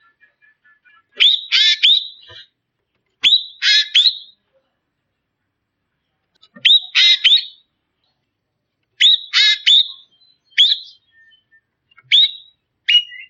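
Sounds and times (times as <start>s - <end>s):
Ekek bird calling: 0.0s - 2.6s, 3.2s - 4.4s, 6.4s - 7.7s, 9.0s - 13.2s.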